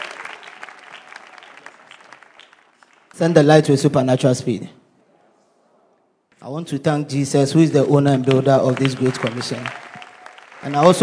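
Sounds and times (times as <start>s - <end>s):
audience clapping: 0.0s - 3.7s, 7.6s - 11.0s
speech: 3.2s - 4.8s, 6.5s - 9.8s, 10.6s - 11.0s.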